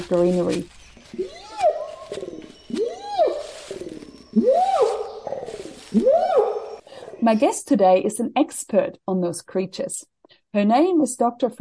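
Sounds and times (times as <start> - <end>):
speech: 0.0 - 1.3, 7.2 - 11.6
animal calls in a rainforest: 0.0 - 7.4
rainforest ambience: 0.0 - 7.6.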